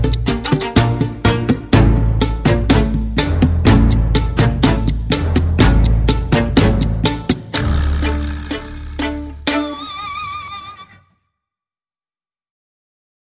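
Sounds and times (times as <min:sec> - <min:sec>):
percussion: 0:00.0 - 0:10.6
strings: 0:00.0 - 0:11.0.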